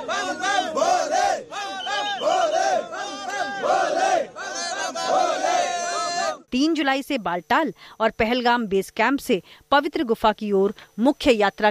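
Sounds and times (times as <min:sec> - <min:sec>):
pilgrims chanting devotional slogans: 0:00.0 - 0:06.5
speech: 0:06.5 - 0:11.7.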